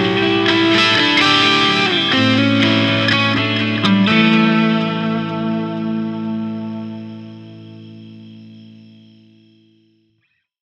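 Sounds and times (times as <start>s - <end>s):
clean blues music: 0.0s - 9.9s.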